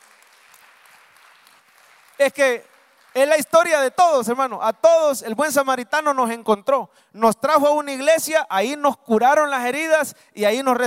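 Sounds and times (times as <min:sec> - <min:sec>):
audience applause: 0:00.0 - 0:03.4
speech: 0:02.2 - 0:10.8.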